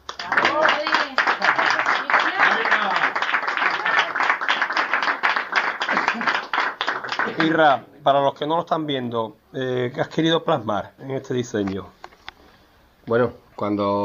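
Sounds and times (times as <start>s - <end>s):
audience applauding: 0.0s - 7.8s
speech: 7.4s - 12.0s, 13.1s - 14.0s.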